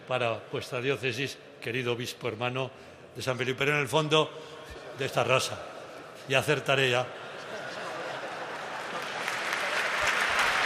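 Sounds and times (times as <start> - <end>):
speech: 0.1 - 7.2
laughter: 7.0 - 10.1
applause: 8.4 - 10.6.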